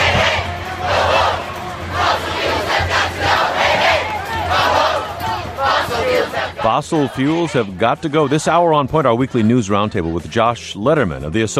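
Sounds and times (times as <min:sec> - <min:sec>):
crowd roaring and chanting at climate protest march: 0:00.0 - 0:10.6
speech: 0:06.7 - 0:11.5.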